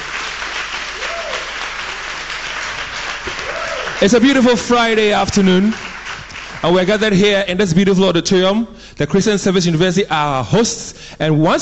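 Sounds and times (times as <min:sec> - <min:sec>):
auditorium audience applause: 0:00.0 - 0:07.1
speech: 0:04.0 - 0:05.8, 0:06.6 - 0:11.6.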